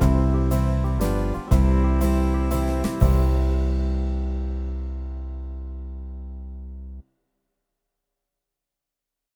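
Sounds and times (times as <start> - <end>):
backing track: 0.0 - 6.1.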